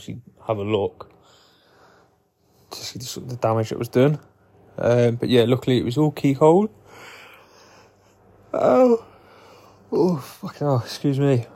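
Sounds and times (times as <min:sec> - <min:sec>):
speech: 0:00.0 - 0:01.1, 0:02.7 - 0:07.1, 0:08.5 - 0:09.1, 0:09.9 - 0:11.5
broken wavering moans and whimpers: 0:08.5 - 0:09.2
painful yawn: 0:08.5 - 0:10.2.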